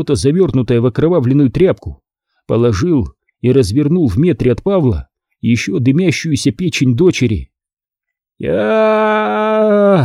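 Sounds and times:
speech: 0.0 - 7.5, 8.4 - 10.0
man's long loud anguished moaning scream: 8.4 - 10.0.

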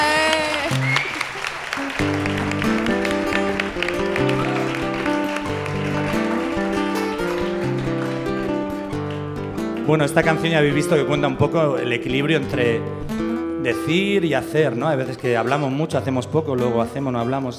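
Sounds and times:
audience applause: 0.0 - 10.7
speech: 9.9 - 17.5.

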